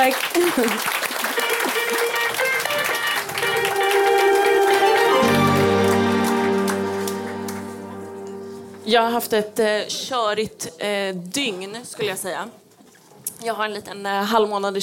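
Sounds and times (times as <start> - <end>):
speech: 0.0 - 1.1, 8.9 - 12.6, 13.4 - 14.8
applause: 0.0 - 8.1
sustained musical tones: 1.9 - 9.7.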